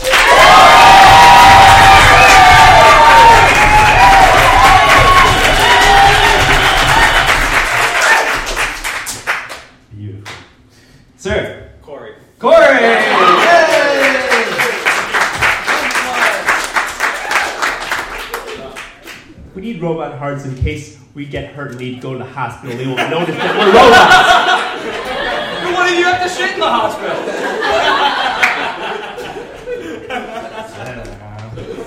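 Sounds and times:
loud crowd cheering and applauding: 0:00.0 - 0:09.6, 0:12.8 - 0:19.2
speech: 0:20.3 - 0:24.3
laughter: 0:22.6 - 0:31.8.

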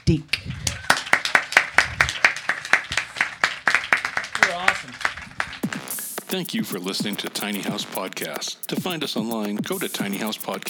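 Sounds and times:
speech: 0:00.1 - 0:00.3, 0:06.3 - 0:10.6
round of applause for two guests: 0:00.6 - 0:06.2.

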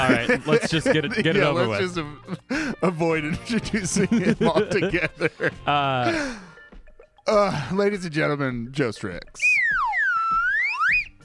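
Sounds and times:
laughter: 0:00.0 - 0:06.4
speech: 0:00.0 - 0:06.5, 0:07.2 - 0:09.6
slide whistle: 0:09.4 - 0:11.2.

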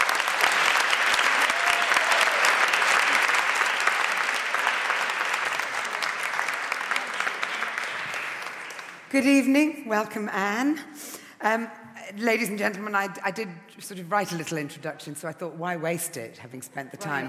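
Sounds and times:
audience applause welcoming two authors at a book event: 0:00.0 - 0:09.1
speech: 0:09.1 - 0:17.2.

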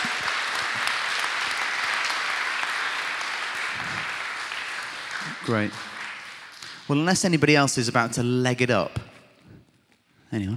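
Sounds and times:
audience clapping: 0:00.0 - 0:07.7
speech: 0:05.5 - 0:05.9, 0:06.9 - 0:09.1, 0:10.3 - 0:10.5.

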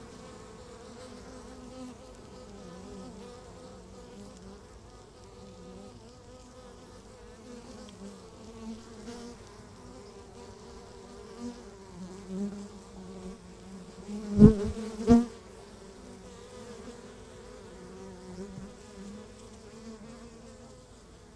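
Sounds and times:
honey bees humming: 0:00.0 - 0:21.3.

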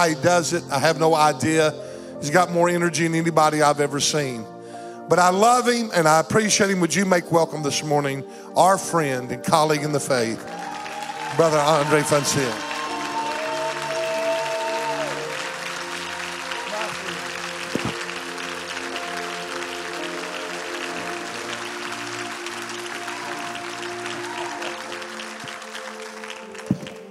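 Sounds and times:
speech: 0:00.0 - 0:04.5, 0:05.1 - 0:10.6, 0:11.3 - 0:12.7
church audience applause: 0:10.4 - 0:27.1.

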